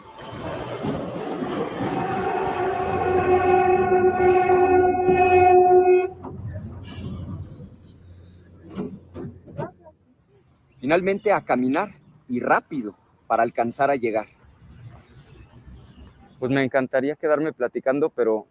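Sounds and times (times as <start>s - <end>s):
Mexico City metro train motor whine: 0.0s - 7.5s
quieter rumbling and scattered clatter of Mexico City metro train: 6.1s - 10.0s
speech: 10.9s - 14.4s, 16.4s - 18.4s.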